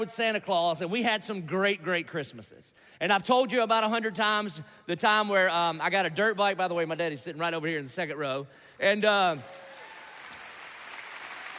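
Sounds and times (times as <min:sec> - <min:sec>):
speech: 0:00.0 - 0:09.6
Christmas Eve audience applause and crowd noise: 0:09.4 - 0:11.5.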